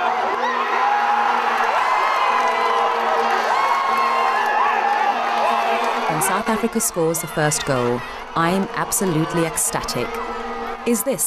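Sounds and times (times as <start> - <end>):
football stadium crowd cheering: 0.0 - 11.2
speech: 6.3 - 11.2.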